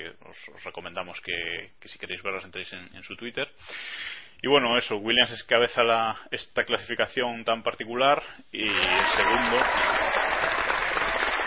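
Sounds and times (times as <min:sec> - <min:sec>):
speech: 0:00.3 - 0:10.3
applause: 0:08.7 - 0:11.4.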